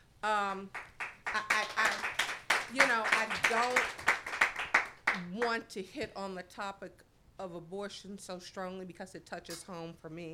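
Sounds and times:
speech: 0:00.2 - 0:00.9, 0:02.7 - 0:04.1, 0:05.2 - 0:10.3
hands clapping: 0:00.7 - 0:05.6.

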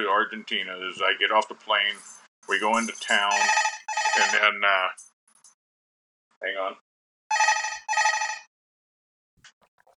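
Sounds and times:
speech: 0:00.0 - 0:05.0, 0:06.4 - 0:06.8
hotel room telephone ringing: 0:03.2 - 0:04.6, 0:07.3 - 0:08.5.

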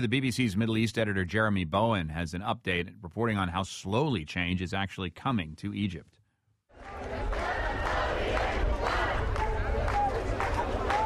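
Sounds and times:
speech: 0:00.0 - 0:06.2
large crowd chanting in unison at a protest: 0:06.7 - 0:11.0.

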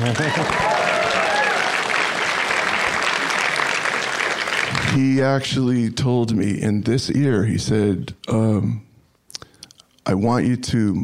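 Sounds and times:
audience applause: 0:00.0 - 0:05.2
speech: 0:00.1 - 0:00.8, 0:05.0 - 0:08.9, 0:10.1 - 0:11.0
faint whoop: 0:00.2 - 0:01.9.

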